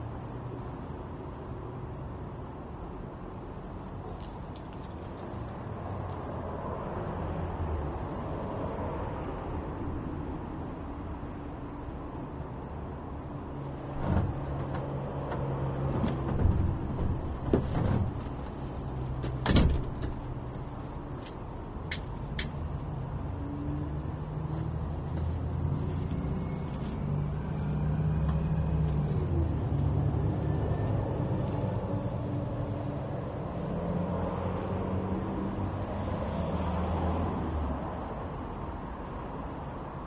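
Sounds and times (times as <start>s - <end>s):
cars passing: 0.0s - 40.0s
footsteps walking: 20.5s - 21.5s, 24.0s - 29.9s.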